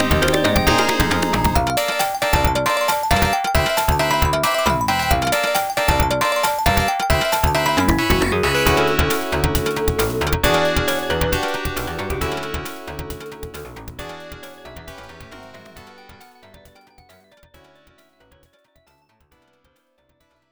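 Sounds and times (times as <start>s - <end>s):
marimba: 0.0s - 14.3s.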